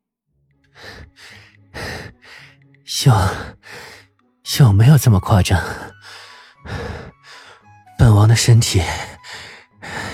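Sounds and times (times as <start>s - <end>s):
person panting heavily: 0.8s - 4.1s, 5.7s - 7.7s, 9.1s - 10.1s
speech: 2.9s - 3.6s, 4.5s - 5.9s, 8.4s - 9.2s.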